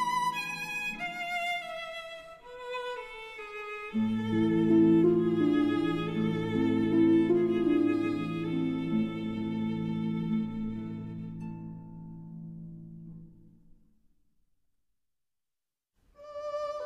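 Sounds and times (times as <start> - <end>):
berceuse for violin and harp: 0.0 - 12.3, 16.2 - 16.8.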